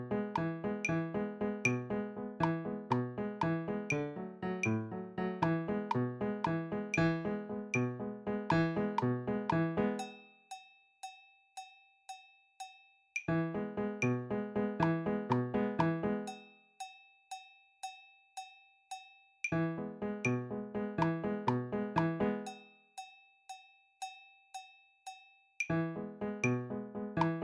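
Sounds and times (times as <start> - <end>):
piano piece: 0.0 - 10.0, 13.3 - 16.3, 19.5 - 22.5, 25.7 - 27.4.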